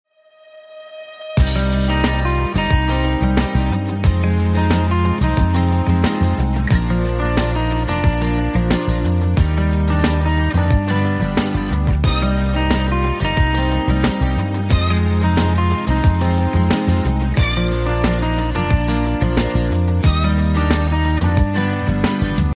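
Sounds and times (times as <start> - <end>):
instrumental music: 0.1 - 22.5.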